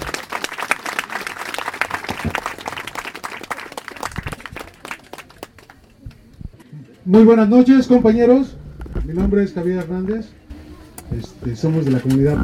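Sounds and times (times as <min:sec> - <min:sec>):
audience applause: 0:00.0 - 0:06.1
speech: 0:07.1 - 0:10.4, 0:11.1 - 0:12.4.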